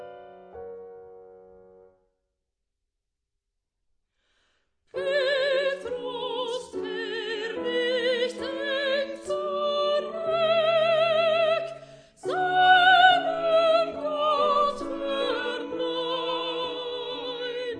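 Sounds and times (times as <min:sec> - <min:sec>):
soprano singing: 0:04.9 - 0:17.7.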